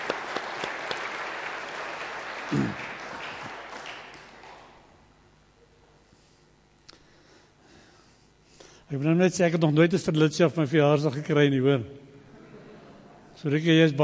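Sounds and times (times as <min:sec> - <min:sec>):
audience applause: 0:00.0 - 0:04.9
speech: 0:02.5 - 0:02.9, 0:09.0 - 0:12.0, 0:13.4 - 0:14.0.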